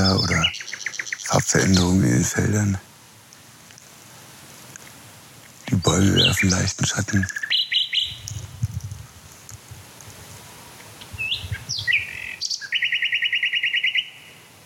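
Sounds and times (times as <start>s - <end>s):
male songbird singing: 0.0s - 2.2s, 5.6s - 8.9s, 10.5s - 14.5s
speech: 1.5s - 2.9s, 6.0s - 7.4s.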